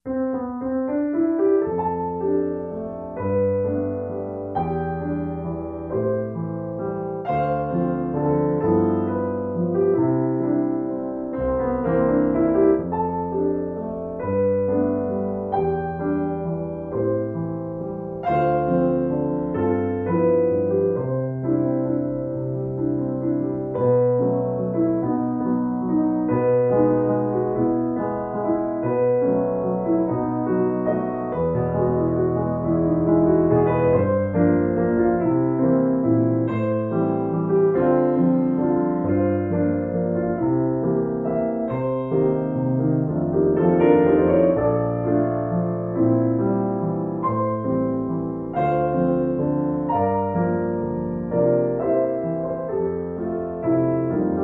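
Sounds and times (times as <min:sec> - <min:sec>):
solo piano: 0:00.0 - 0:54.4.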